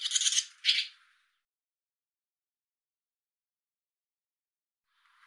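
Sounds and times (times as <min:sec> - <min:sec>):
barn swallow chirping with softer buzzy notes: 0:00.0 - 0:01.0.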